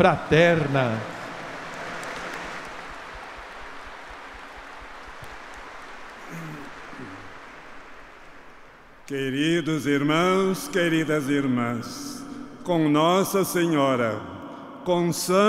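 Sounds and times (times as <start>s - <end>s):
speech: 0.0s - 1.1s, 9.1s - 15.4s
audience applause: 0.0s - 9.1s.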